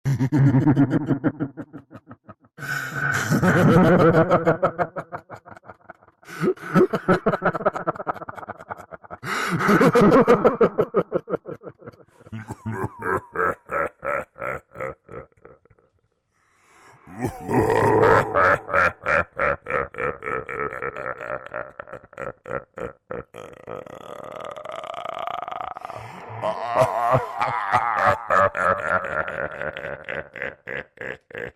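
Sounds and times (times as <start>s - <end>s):
creepy evil clown laughing: 0.1s - 15.9s, 17.1s - 31.5s.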